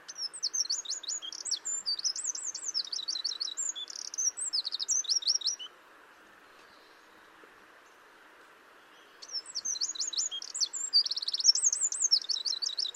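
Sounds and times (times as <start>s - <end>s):
Eurasian wren Troglodytes troglodytes singing high trills and rattles: 0.1s - 5.7s, 9.3s - 12.9s.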